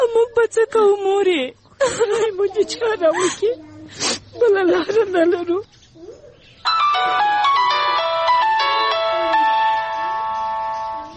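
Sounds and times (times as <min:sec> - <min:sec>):
speech: 0:00.3 - 0:07.7
mobile phone ringtone electronic melody: 0:06.7 - 0:11.1.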